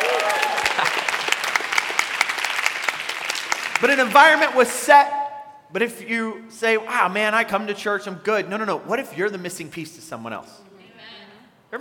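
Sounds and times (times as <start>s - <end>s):
crowd clapping: 0.0s - 4.9s
speech: 3.8s - 10.7s.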